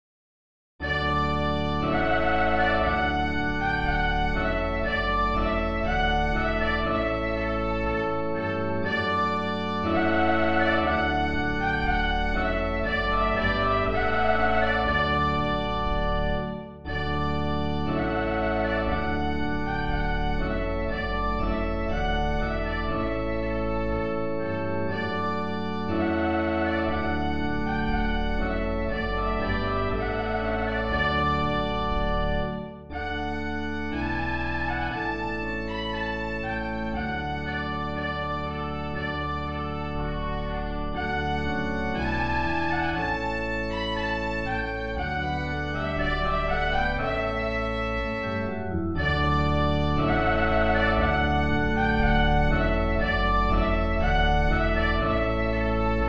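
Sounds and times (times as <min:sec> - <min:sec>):
trumpet piece: 0:00.8 - 0:56.0.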